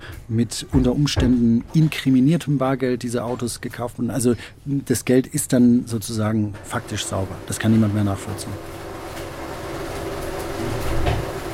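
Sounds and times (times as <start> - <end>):
speech: 0.3 - 8.8
money counting machines running in a bank: 6.7 - 11.5.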